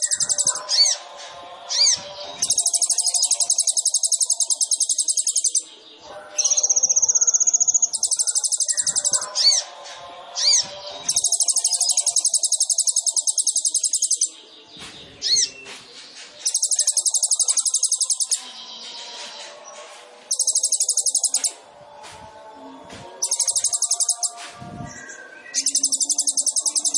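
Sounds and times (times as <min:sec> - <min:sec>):
soft bird chatter: 0:00.0 - 0:26.9
sunbird song: 0:00.0 - 0:26.9.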